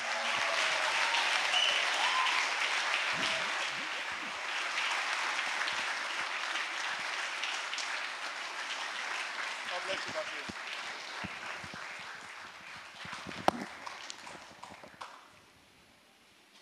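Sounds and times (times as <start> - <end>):
church audience applause welcoming a pastor to the platform: 0.0 - 15.3.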